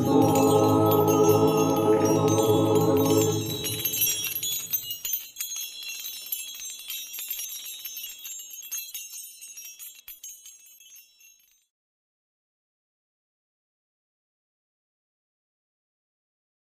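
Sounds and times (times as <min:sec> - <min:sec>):
choir singing a Christmas chorale: 0:00.0 - 0:04.5.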